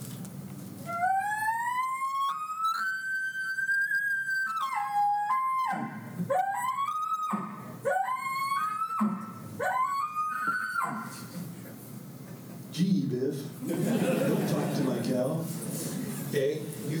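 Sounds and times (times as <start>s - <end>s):
imitated elk challenge bugle: 0.7s - 11.8s
laughter: 13.6s - 16.9s.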